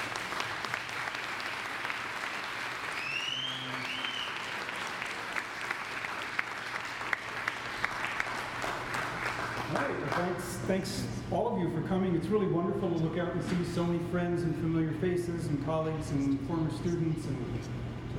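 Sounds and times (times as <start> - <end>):
warm round of audience applause: 0.0 - 10.4
speech: 10.2 - 17.8.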